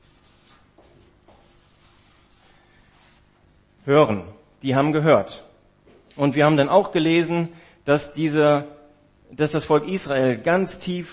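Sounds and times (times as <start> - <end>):
handwriting scratching: 0.0 - 3.3
speech: 3.9 - 5.5, 6.2 - 11.1.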